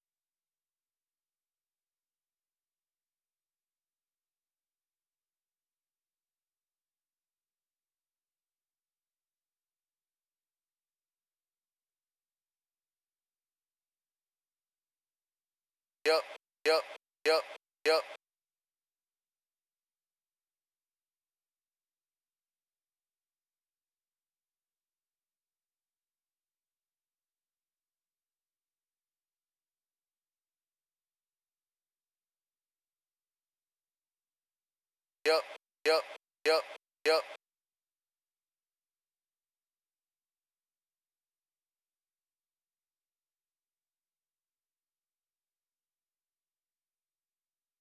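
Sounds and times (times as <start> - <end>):
100 bpm vocal sample: 16.1 - 18.2, 35.3 - 37.4.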